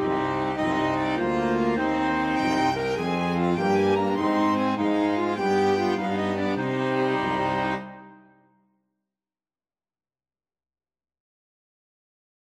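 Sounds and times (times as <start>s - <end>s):
flexible mixed ensemble of 4 players: 0.0s - 8.2s.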